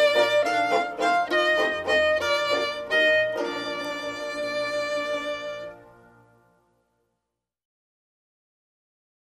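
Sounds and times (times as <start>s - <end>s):
Portuguese children's songbook song instrumental: 0.0s - 6.8s.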